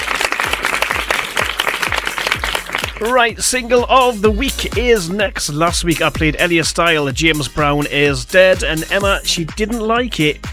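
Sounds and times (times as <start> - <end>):
audience applause: 0.0 - 3.2
speech: 3.0 - 10.5.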